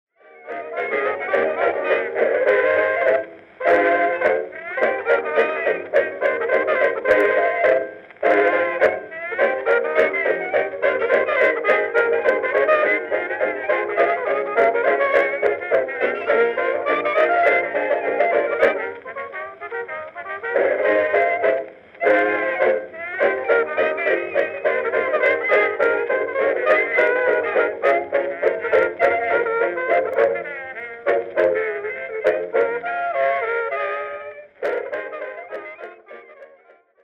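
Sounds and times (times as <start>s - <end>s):
blues music: 0.2s - 37.0s.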